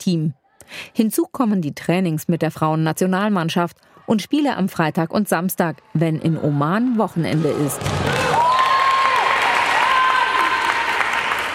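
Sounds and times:
speech: 0:00.0 - 0:08.2
spectators cheering at women's football match: 0:06.3 - 0:11.5.

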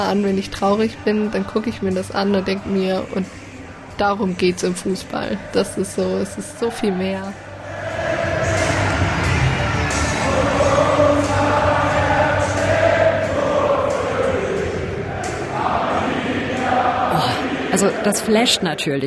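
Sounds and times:
speech: 0:00.0 - 0:03.4, 0:04.0 - 0:07.4, 0:17.8 - 0:19.0
packed football stadium crowd cheering: 0:05.5 - 0:18.8.

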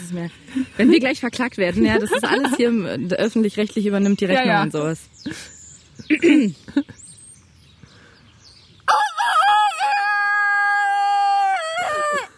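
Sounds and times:
speech: 0:00.1 - 0:07.0
person imitating a rooster crow: 0:08.9 - 0:12.3.

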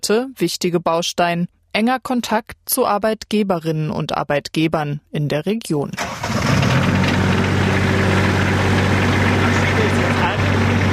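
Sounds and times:
speech: 0:00.0 - 0:06.9
water tanker engine rumbling: 0:06.1 - 0:10.9.

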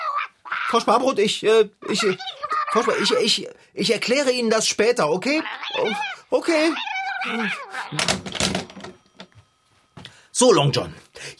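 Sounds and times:
cats caterwauling: 0:00.0 - 0:00.9, 0:01.8 - 0:03.3, 0:05.2 - 0:08.2
speech: 0:00.7 - 0:08.6, 0:10.4 - 0:11.3.

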